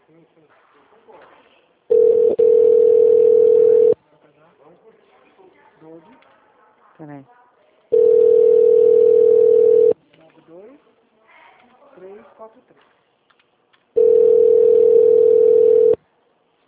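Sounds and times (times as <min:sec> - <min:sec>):
speech: 0:00.1 - 0:02.1, 0:07.0 - 0:07.4
telephone ringback tone on an outgoing call: 0:01.9 - 0:04.0, 0:07.9 - 0:10.0, 0:14.0 - 0:16.0.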